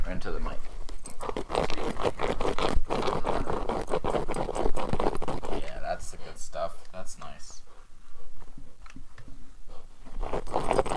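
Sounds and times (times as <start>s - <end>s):
speech: 0.1s - 0.8s
dog scratching: 0.6s - 5.8s, 10.0s - 10.9s.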